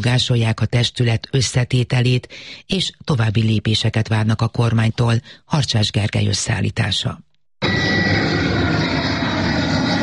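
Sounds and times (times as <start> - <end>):
speech: 0.0 - 8.2
jet airplane flying overhead at night: 7.6 - 10.0.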